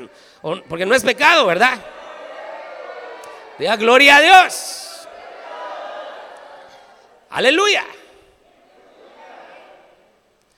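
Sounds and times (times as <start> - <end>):
audience shouting for joy: 0.0 - 10.2
speech: 0.1 - 2.0, 3.6 - 4.8, 7.3 - 8.0.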